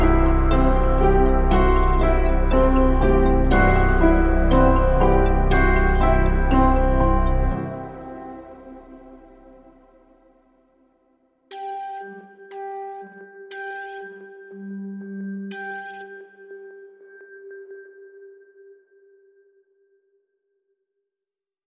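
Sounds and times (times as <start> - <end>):
light quirky magic music: 0.0 - 9.2.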